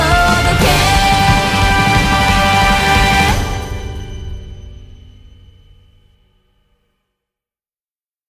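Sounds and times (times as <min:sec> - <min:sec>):
battle background music: 0:00.0 - 0:04.5.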